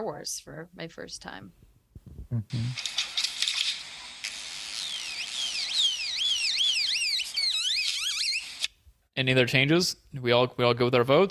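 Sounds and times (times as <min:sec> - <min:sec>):
speech: 0:00.0 - 0:01.7, 0:02.3 - 0:03.1, 0:09.2 - 0:11.2
great-tailed grackle call: 0:04.7 - 0:08.6.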